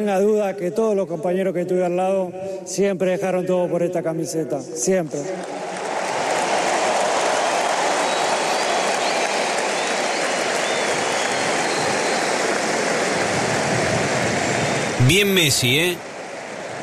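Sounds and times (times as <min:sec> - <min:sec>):
speech: 0:00.0 - 0:05.8, 0:15.0 - 0:16.1
crowd applause: 0:05.4 - 0:13.8, 0:15.0 - 0:16.0.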